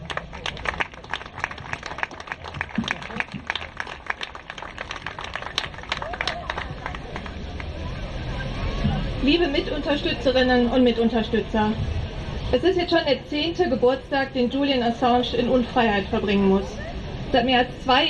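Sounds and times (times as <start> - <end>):
audience applause: 0.0 - 7.8
speech: 9.3 - 18.0.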